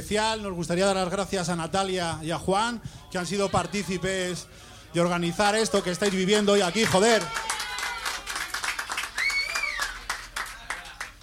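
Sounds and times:
speech: 0.0s - 7.5s
voices calling out: 2.8s - 8.4s
club audience applauding: 5.0s - 11.2s
shrill whistle: 9.2s - 10.0s.

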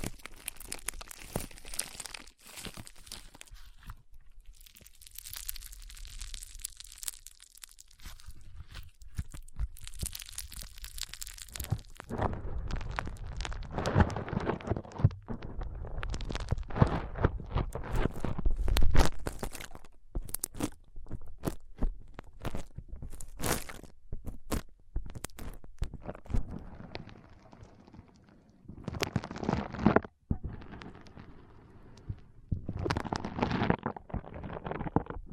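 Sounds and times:
foam squeezed and rubbed: 0.0s - 35.3s.

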